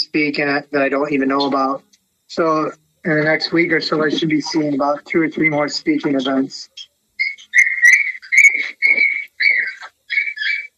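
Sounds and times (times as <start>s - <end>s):
speech: 0.2s - 6.9s
puppies squeaking: 7.2s - 10.7s.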